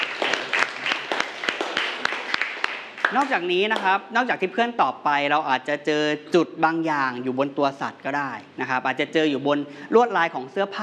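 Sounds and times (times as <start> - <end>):
group applause: 0.0 - 3.9
speech: 3.1 - 10.8.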